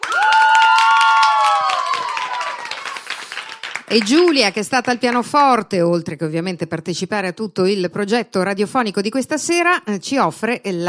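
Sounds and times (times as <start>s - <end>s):
whoops and cheers: 0.0s - 3.8s
group of students clapping: 0.0s - 5.0s
speech: 3.9s - 10.8s.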